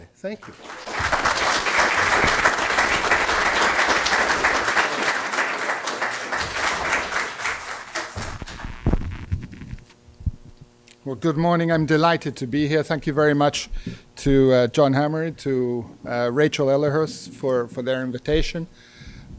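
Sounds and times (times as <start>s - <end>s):
speech: 0.2s - 1.5s, 11.1s - 18.9s
audience applause welcoming a speaker: 0.4s - 9.3s.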